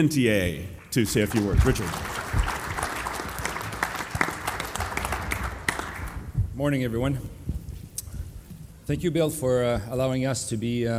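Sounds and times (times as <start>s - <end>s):
speech: 0.0s - 2.2s, 6.6s - 7.4s, 8.9s - 10.9s
audience applause at a sponsored conference panel: 1.0s - 6.3s.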